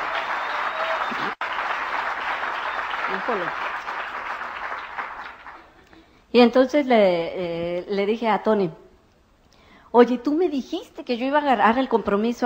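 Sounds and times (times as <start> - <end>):
audience applause: 0.0 - 5.7
speech: 3.1 - 3.6, 6.3 - 8.8, 10.0 - 12.4.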